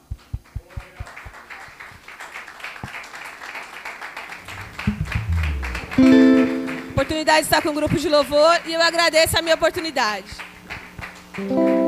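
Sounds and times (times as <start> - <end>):
applause: 0.0 - 11.8
speech: 6.0 - 6.2, 7.1 - 10.4, 11.4 - 11.8.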